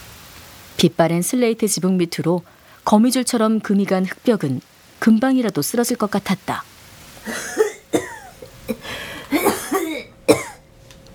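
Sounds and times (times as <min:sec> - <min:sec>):
speech: 0:00.8 - 0:07.5
person coughing inside a house: 0:07.2 - 0:10.6.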